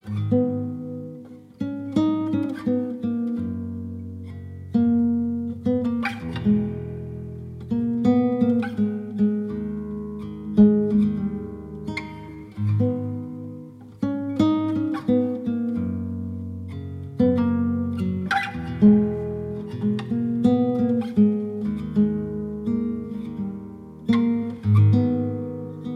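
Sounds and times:
guitar: 0:00.0 - 0:25.9.

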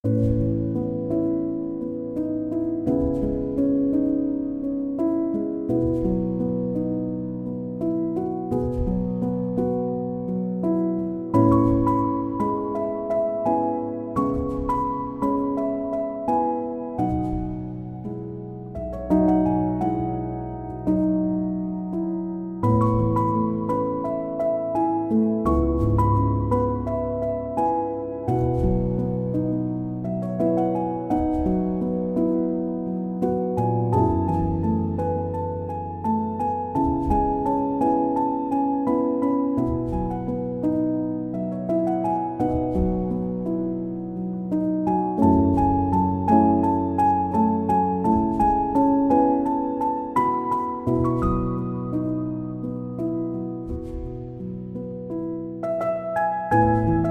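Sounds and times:
piano instrumental: 0:00.0 - 0:57.0.

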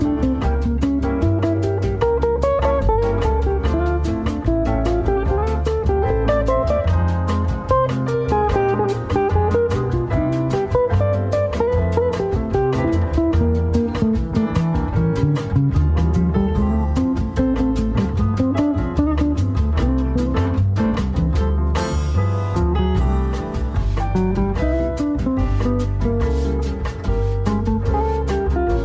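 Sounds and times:
bossa nova music: 0:00.0 - 0:28.8.

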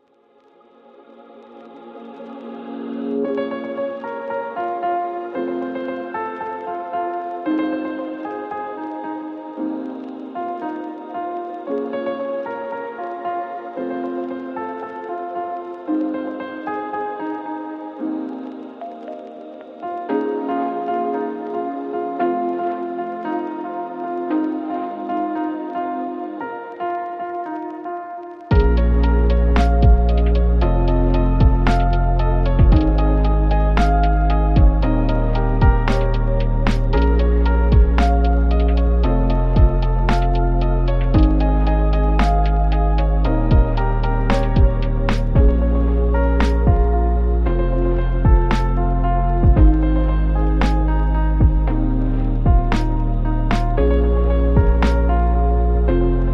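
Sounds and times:
instrumental lofi music: 0:01.4 - 0:56.3.

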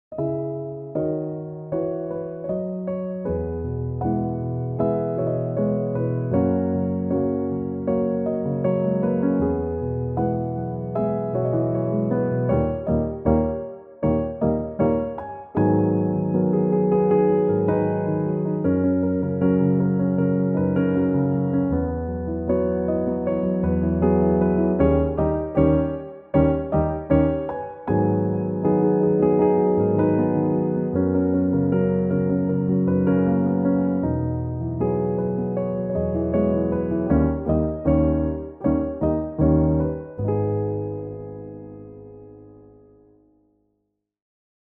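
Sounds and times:
piano instrumental: 0:00.0 - 0:43.4.

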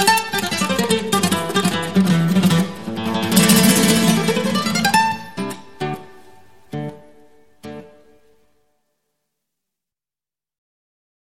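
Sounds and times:
Spanish guitar: 0:00.0 - 0:08.8.

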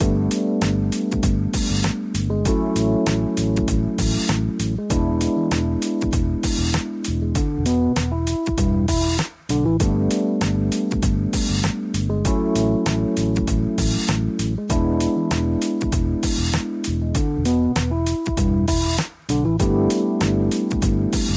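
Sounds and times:
downtempo lounge music: 0:00.0 - 0:21.3.

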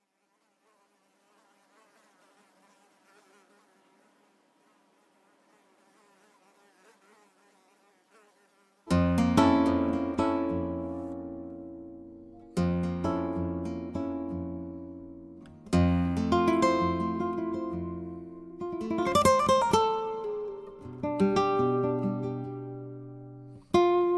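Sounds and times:
classical instrumental piece: 0:09.0 - 0:23.3.

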